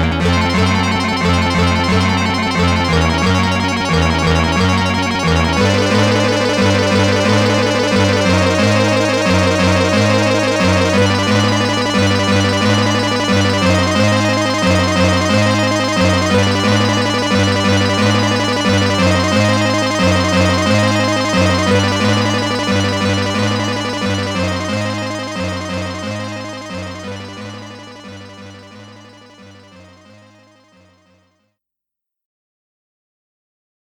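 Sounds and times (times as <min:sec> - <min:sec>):
boss battle background music: 0:00.2 - 0:29.7.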